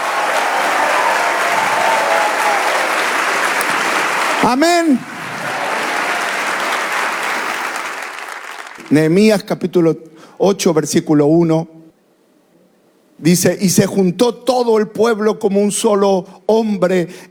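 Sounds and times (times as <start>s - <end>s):
audience applause: 0.0s - 8.8s
speech: 4.4s - 5.1s, 8.9s - 11.8s, 13.2s - 17.3s.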